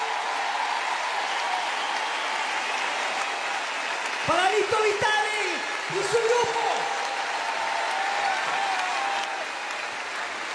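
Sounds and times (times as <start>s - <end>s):
audience applause: 0.0s - 10.5s
speech: 4.3s - 6.8s.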